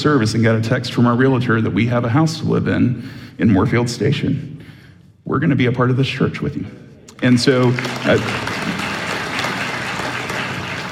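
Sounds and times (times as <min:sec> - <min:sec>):
speech: 0:00.0 - 0:04.6, 0:05.2 - 0:08.8
church congregation applause: 0:07.1 - 0:10.9.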